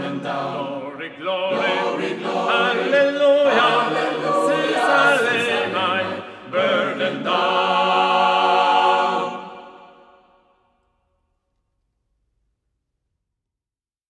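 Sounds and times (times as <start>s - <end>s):
choir singing: 0.0s - 10.5s.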